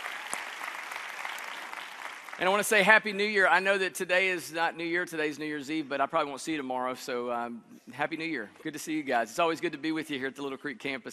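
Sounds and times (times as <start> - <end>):
audience applause: 0.0 - 2.8
speech: 2.4 - 11.1.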